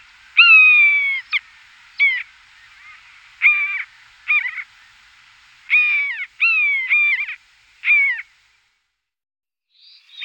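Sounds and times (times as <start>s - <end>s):
common buzzard calling in short hoarse notes: 0.4s - 1.4s, 2.0s - 4.7s, 5.7s - 8.3s.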